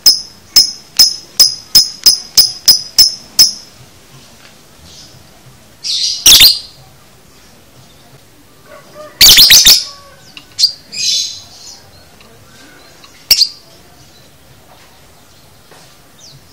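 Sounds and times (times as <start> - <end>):
lovebird chattering with shrill squeaks, chirps, clicks and rattling: 0.0 - 3.8, 5.8 - 6.8, 9.2 - 11.8, 13.0 - 13.6.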